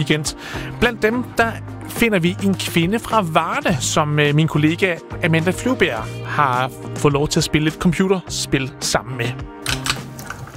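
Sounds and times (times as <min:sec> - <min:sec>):
speech: 0:00.0 - 0:09.6
typing on a computer keyboard while playing Blitz Royale: 0:09.6 - 0:10.5.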